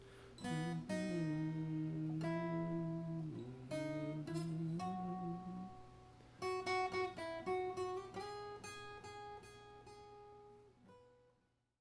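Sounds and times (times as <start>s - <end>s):
music improvisation: 0.4s - 8.4s.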